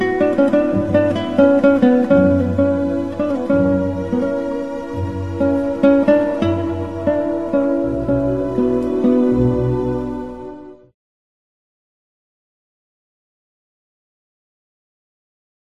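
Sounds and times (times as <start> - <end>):
guitar concerto with orchestra: 0.0 - 10.9.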